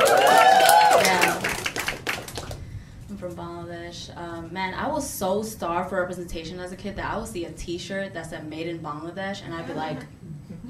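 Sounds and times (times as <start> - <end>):
audience clapping: 0.0 - 2.6
speech: 4.4 - 10.6.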